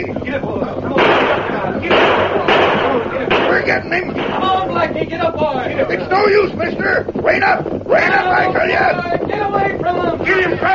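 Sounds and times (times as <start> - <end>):
speech: 0.0 - 0.5, 3.7 - 10.7
gunshots in a radio western chase scene: 0.9 - 4.8.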